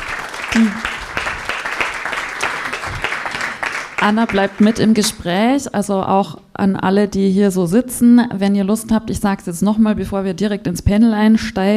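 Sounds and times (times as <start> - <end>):
audience applause: 0.0 - 5.0
speech: 4.0 - 11.7.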